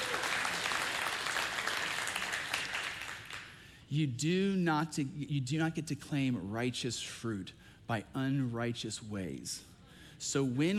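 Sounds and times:
crowd applause: 0.0 - 3.6
speech: 3.9 - 10.7.

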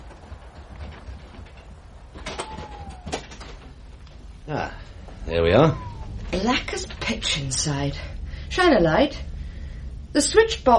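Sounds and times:
old stiff door being opened: 0.1 - 4.0
speech: 4.5 - 9.3, 10.1 - 10.7.

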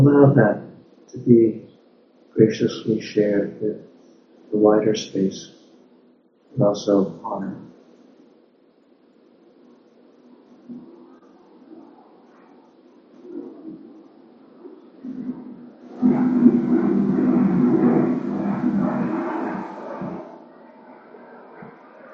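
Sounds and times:
speech: 0.0 - 1.7, 2.4 - 3.9, 4.5 - 5.6, 6.6 - 7.7
airplane flying overhead: 13.2 - 22.1.

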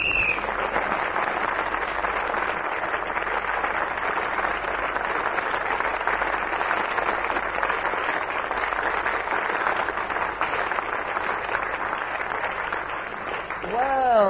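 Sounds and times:
brief voice or whistle-like tone: 0.0 - 0.4
audience applause: 0.0 - 14.2.

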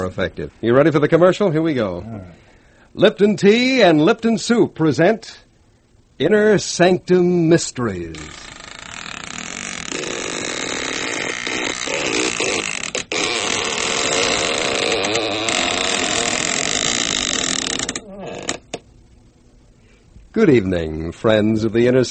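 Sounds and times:
speech: 0.0 - 5.4, 6.2 - 8.5, 20.4 - 22.1
creaking door sound effect: 8.1 - 18.8.

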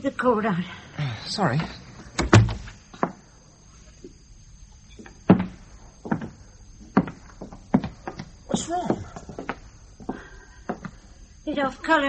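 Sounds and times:
speech: 0.0 - 1.8, 11.5 - 12.0
faint steady high whine: 0.0 - 12.0
door shutting with a heavy thud: 2.2 - 2.8
soft clunks and knocks: 2.2 - 3.2, 5.0 - 9.6.

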